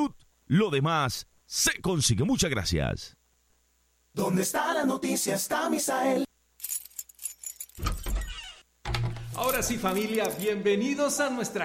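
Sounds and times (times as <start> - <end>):
speech: 0.0 - 3.2, 4.2 - 6.3, 9.4 - 11.6
keys jingling: 6.6 - 8.2, 9.3 - 10.6
house door opening with scrape: 7.8 - 8.6.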